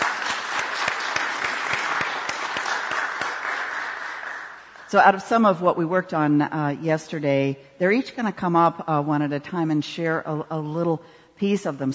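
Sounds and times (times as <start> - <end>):
audience applause: 0.0 - 4.9
speech: 4.9 - 11.9.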